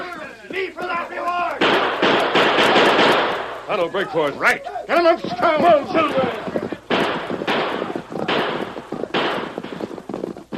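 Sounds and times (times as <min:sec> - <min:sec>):
gunshots in a Lone Ranger radio drama shootout: 0:01.6 - 0:03.9, 0:05.0 - 0:10.5
speech: 0:03.7 - 0:06.5.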